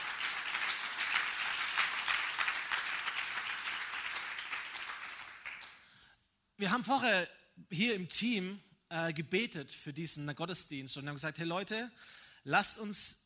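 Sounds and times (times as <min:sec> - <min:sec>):
audience applause: 0:00.0 - 0:05.8
speech: 0:06.6 - 0:13.2.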